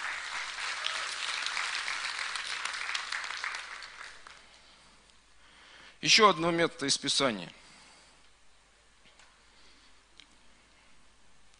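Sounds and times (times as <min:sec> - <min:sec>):
audience applauding: 0:00.0 - 0:04.4
speech: 0:06.1 - 0:07.6.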